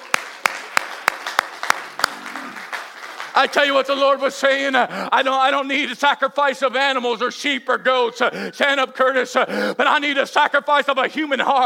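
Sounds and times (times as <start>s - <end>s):
people clapping hands: 0.0s - 4.2s
speech: 3.4s - 11.6s.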